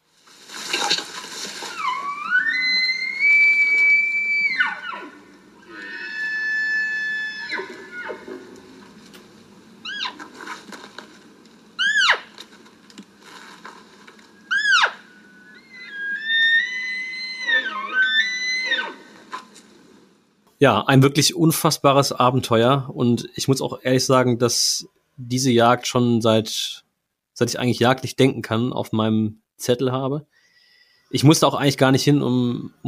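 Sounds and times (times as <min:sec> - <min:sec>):
maral deer whistling rut call: 0:01.7 - 0:08.3, 0:09.8 - 0:10.2, 0:11.8 - 0:12.3, 0:14.4 - 0:19.1
speech: 0:20.6 - 0:26.8, 0:27.4 - 0:30.3, 0:31.1 - 0:32.8.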